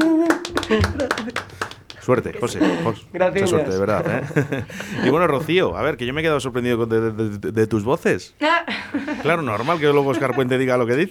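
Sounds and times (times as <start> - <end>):
audience applause: 0.0 - 5.6
laughter: 0.0 - 6.2, 8.4 - 11.0
speech: 0.7 - 1.4, 2.1 - 11.0.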